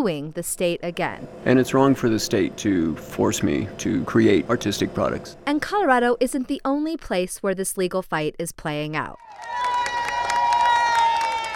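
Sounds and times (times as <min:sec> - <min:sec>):
speech: 0:00.0 - 0:09.7
crowd cheering and clapping outside the Arizona Supreme Court: 0:09.2 - 0:11.5.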